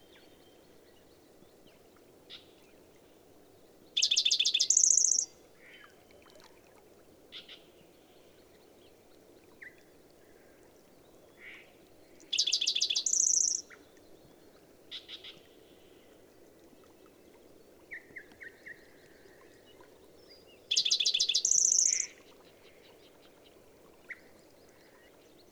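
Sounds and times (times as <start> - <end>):
bird song with dense buzzy high trills and a sustained thin whistle: 4.1 - 5.3, 12.4 - 13.8, 20.7 - 22.2.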